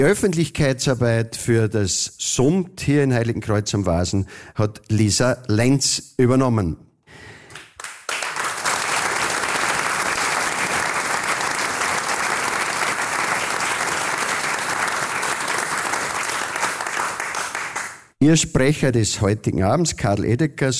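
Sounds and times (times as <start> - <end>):
speech: 0.0 - 7.3, 18.2 - 20.7
audience applause: 7.6 - 18.1.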